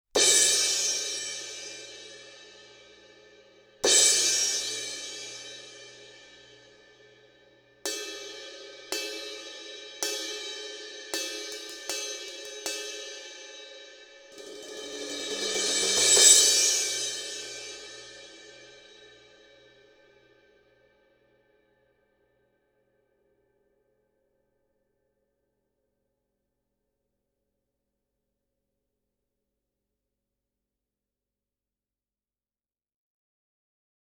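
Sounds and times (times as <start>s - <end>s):
crash cymbal: 0.2s - 20.7s.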